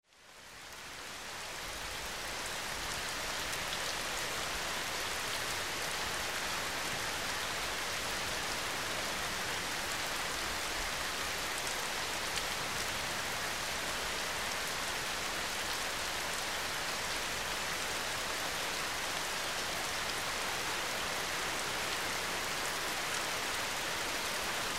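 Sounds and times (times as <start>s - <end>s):
rain: 0.0s - 24.7s.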